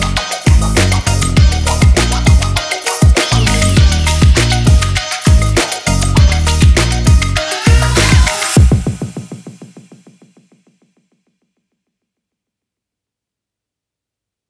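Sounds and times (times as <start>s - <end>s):
hip hop music: 0.0s - 10.4s.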